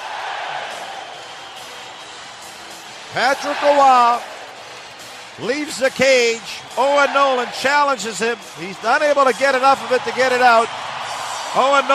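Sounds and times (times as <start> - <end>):
hockey crowd cheering in a standing ovation after a San Jose Sharks playoff goal: 0.0 - 11.9
speech: 3.1 - 4.3, 5.4 - 10.9, 11.6 - 11.9.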